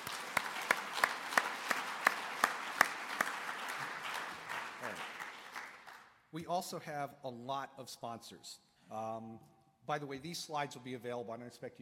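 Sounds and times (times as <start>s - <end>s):
audience applause: 0.0s - 6.1s
speech: 6.3s - 11.8s.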